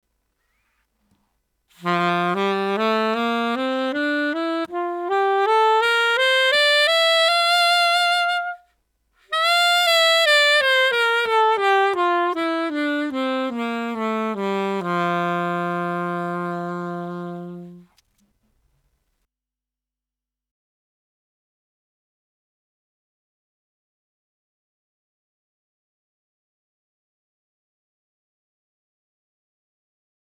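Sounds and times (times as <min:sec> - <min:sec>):
jazz on a saxophone mouthpiece: 0:01.8 - 0:08.7, 0:09.3 - 0:17.9.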